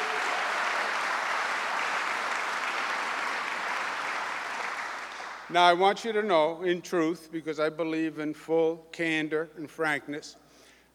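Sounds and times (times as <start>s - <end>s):
audience applause: 0.0s - 5.5s
speech: 5.5s - 10.4s.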